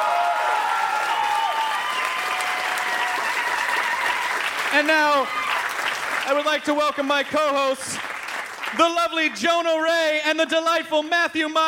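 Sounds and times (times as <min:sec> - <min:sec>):
comedy show audience applause for a comedian: 0:00.0 - 0:09.4
speech: 0:04.7 - 0:05.4, 0:06.3 - 0:08.1, 0:08.7 - 0:11.6.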